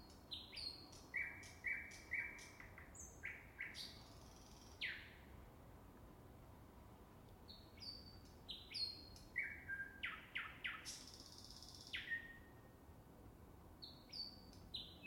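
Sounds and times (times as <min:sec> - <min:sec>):
Finnish birdsong: 0:00.0 - 0:05.2, 0:07.5 - 0:12.5, 0:13.8 - 0:15.0.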